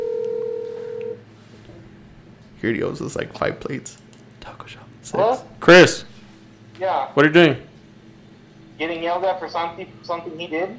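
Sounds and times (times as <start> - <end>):
telephone number being dialed: 0.0 - 1.2
speech: 2.6 - 6.1, 6.8 - 7.7, 8.8 - 10.7.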